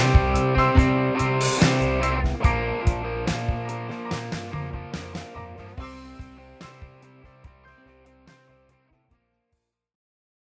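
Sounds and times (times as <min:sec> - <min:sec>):
backing music: 0:00.0 - 0:08.7.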